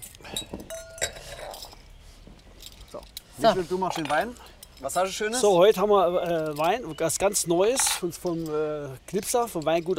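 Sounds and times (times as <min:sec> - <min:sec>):
drinking glasses clinking while being dried by hand: 0:00.3 - 0:01.9, 0:03.8 - 0:09.9
speech: 0:03.0 - 0:09.9.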